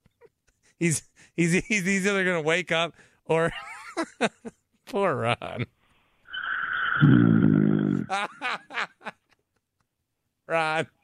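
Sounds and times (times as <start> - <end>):
speech: 0.8 - 5.8, 7.0 - 7.4, 8.0 - 8.9, 10.5 - 11.0
heavy snoring over a phone line: 6.7 - 8.1.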